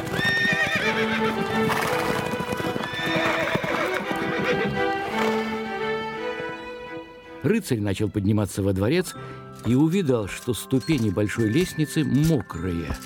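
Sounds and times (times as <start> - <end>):
horses galloping: 0.0 - 5.5
speech: 7.4 - 13.0.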